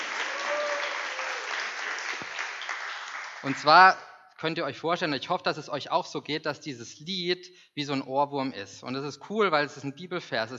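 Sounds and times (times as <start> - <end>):
audience applause: 0.0 - 3.9
speech: 3.4 - 10.5.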